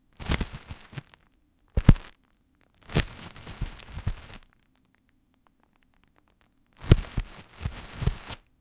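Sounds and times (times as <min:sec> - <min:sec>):
bag shuffling: 0:00.2 - 0:01.2, 0:01.8 - 0:02.1, 0:02.8 - 0:04.4, 0:06.8 - 0:08.4.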